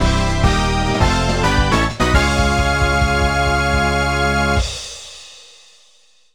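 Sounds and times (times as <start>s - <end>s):
first place fanfare: 0.0s - 4.8s.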